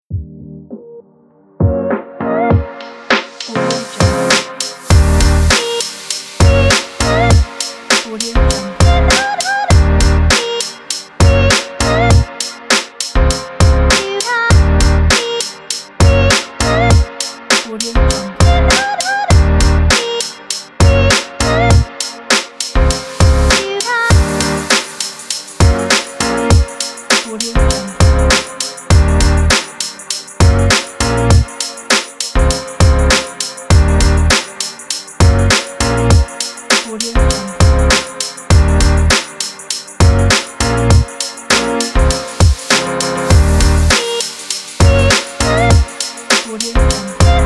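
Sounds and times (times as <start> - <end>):
hip hop music: 0.1 - 47.4.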